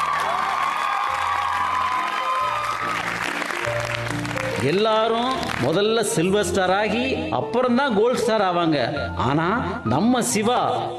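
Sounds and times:
audience cheering: 0:00.0 - 0:04.2
audience applause: 0:00.0 - 0:05.7
speech: 0:04.6 - 0:10.9.

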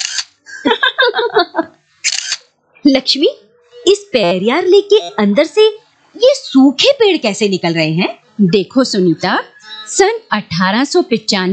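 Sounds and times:
camera shutter clicks: 0:00.0 - 0:00.3, 0:02.0 - 0:02.4
laughter: 0:00.5 - 0:01.7
speech: 0:02.9 - 0:11.5
chirpy voiced sound: 0:08.4 - 0:10.4.

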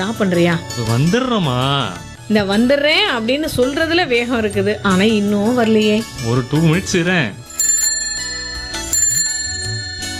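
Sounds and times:
speech: 0:00.0 - 0:07.4
bicycle bell ringing: 0:07.5 - 0:10.1.

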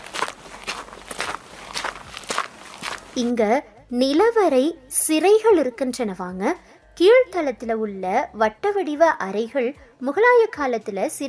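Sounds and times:
footsteps walking slowly: 0:00.0 - 0:03.4
speech: 0:03.2 - 0:11.2.

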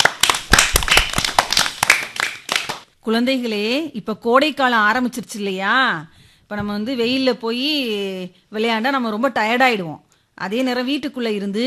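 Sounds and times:
applause for a speech: 0:00.0 - 0:02.9
speech: 0:03.1 - 0:11.6.

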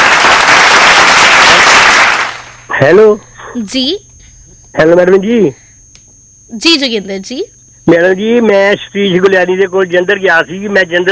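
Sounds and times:
applause for a caller's correct quiz answer: 0:00.0 - 0:02.6
speech: 0:02.8 - 0:04.1, 0:04.7 - 0:05.6, 0:06.5 - 0:11.0.

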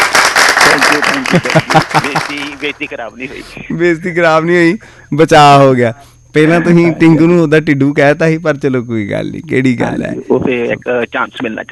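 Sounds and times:
audience applause: 0:00.0 - 0:02.7
laughter: 0:00.7 - 0:03.9
speech: 0:01.3 - 0:11.7.

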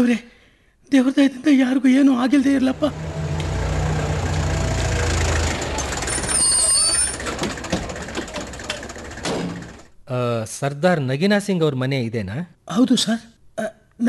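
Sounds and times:
speech: 0:00.0 - 0:00.3, 0:00.9 - 0:03.1, 0:10.1 - 0:14.0
hospital vehicle engine idling as it arrives at a house: 0:02.4 - 0:09.9.

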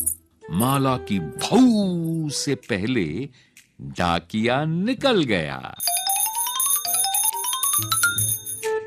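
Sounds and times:
silver anklet bells jingling: 0:00.0 - 0:00.8, 0:05.8 - 0:08.7
speech: 0:00.5 - 0:05.9, 0:07.8 - 0:08.2.

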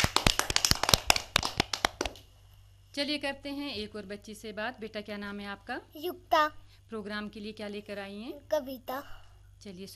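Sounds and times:
small audience clapping: 0:00.0 - 0:02.2
speech: 0:03.0 - 0:09.9.

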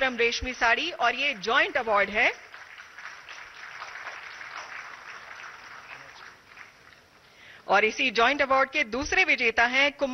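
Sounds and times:
speech: 0:00.0 - 0:02.5, 0:07.7 - 0:10.1
large audience applause: 0:01.6 - 0:07.0.

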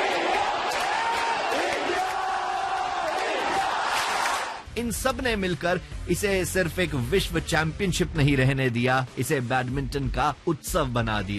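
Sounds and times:
scattered applause: 0:00.0 - 0:04.6
large stadium crowd roaring and cheering: 0:00.0 - 0:04.7
speech: 0:04.8 - 0:11.3.

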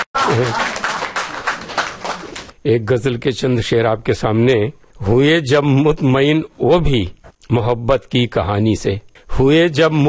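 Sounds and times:
audience clapping at a Hindi poetry recital: 0:00.0 - 0:02.6
speech: 0:00.3 - 0:00.7, 0:02.6 - 0:10.0.

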